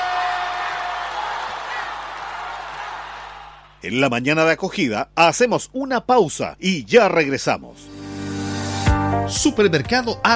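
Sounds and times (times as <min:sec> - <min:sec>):
applause and cheering: 0:00.0 - 0:03.8
speech: 0:03.8 - 0:07.9, 0:09.3 - 0:10.3.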